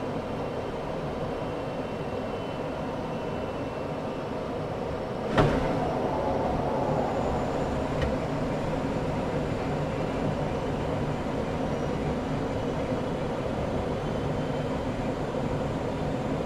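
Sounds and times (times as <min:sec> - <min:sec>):
Gloster Meteor F Mk8 fighter jet flying, interior: 0:00.0 - 0:16.4.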